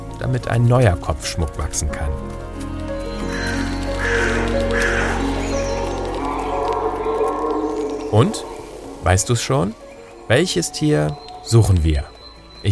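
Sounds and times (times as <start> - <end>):
speech: 0.2 - 2.8, 3.4 - 4.6, 8.1 - 12.7
moose calling: 3.1 - 12.7
steady low rumble: 5.1 - 10.0.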